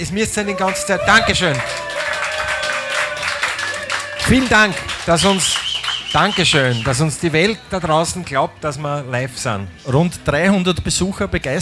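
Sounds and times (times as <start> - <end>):
speech: 0.0 - 2.2, 4.2 - 11.5
crowd applauding: 0.4 - 7.9.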